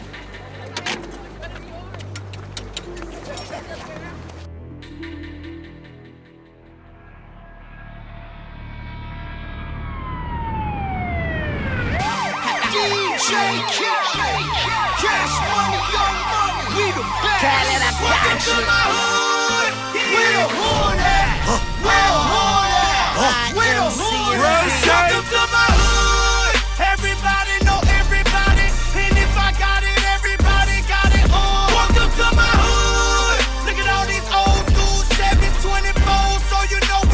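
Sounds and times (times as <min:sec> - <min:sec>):
music track: 0:00.0 - 0:37.1
police car siren wailing: 0:09.3 - 0:37.1
man speaking: 0:23.1 - 0:25.3.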